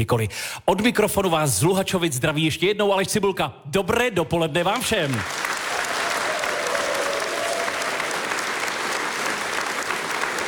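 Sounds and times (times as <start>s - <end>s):
speech: 0.0s - 5.5s
audience applause: 5.0s - 10.4s.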